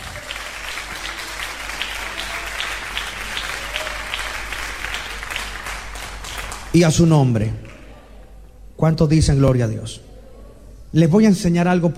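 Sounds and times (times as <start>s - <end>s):
crowd applause: 0.0s - 6.8s
speech: 6.8s - 7.6s, 8.8s - 10.1s, 10.9s - 11.9s.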